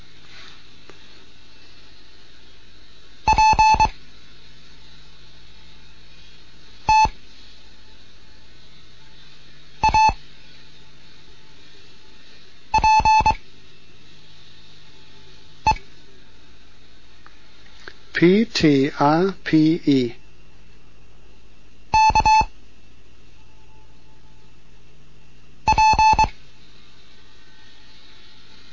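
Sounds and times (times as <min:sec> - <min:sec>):
faint hiss: 0:00.0 - 0:28.7
Morse code practice tones: 0:03.3 - 0:03.9, 0:06.9 - 0:07.2, 0:09.8 - 0:10.2, 0:12.8 - 0:13.4, 0:22.0 - 0:22.5, 0:25.7 - 0:26.3
speech: 0:18.2 - 0:20.2.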